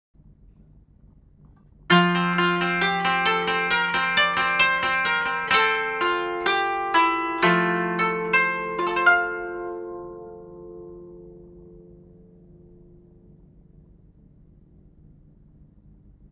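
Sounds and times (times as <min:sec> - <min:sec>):
koto: 0:01.9 - 0:13.6.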